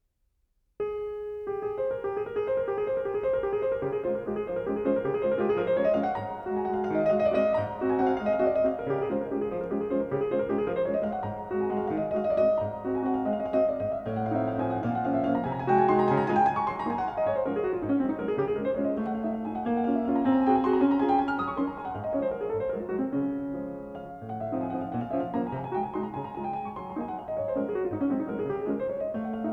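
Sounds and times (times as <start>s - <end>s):
piano waltz in D flat: 0.8s - 29.5s.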